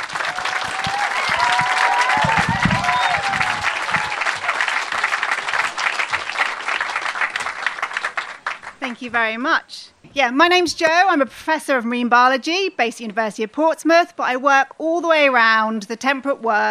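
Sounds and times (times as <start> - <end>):
cheers and whoops: 0.0 - 4.8
crowd clapping: 0.0 - 9.0
speech: 8.9 - 16.6.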